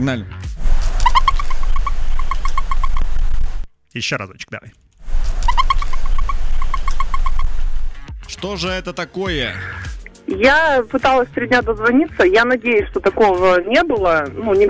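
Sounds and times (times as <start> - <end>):
speech: 0.0 - 0.6, 3.9 - 4.8, 8.4 - 14.6
turkey gobbling: 0.6 - 3.7, 5.1 - 8.0.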